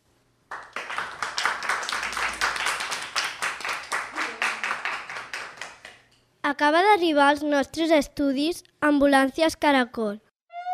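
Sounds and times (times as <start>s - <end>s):
applause: 0.5s - 6.1s
speech: 6.5s - 10.2s.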